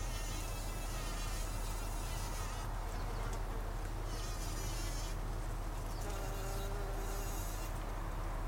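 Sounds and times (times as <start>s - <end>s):
bumblebee buzzing: 0.0s - 7.9s.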